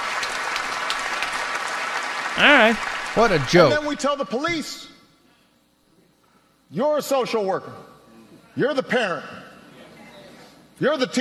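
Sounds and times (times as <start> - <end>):
audience applause: 0.0 - 4.0
speech: 2.4 - 4.9, 6.7 - 7.9, 8.6 - 9.4, 10.8 - 11.2.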